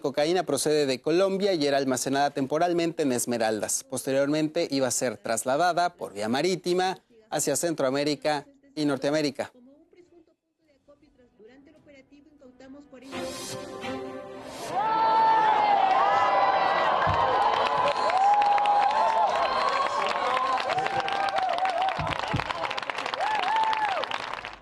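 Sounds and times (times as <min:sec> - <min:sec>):
speech: 0:00.0 - 0:09.6
excited shouts and whoops: 0:14.7 - 0:22.1, 0:23.1 - 0:24.1
crowd applauding: 0:15.0 - 0:24.6.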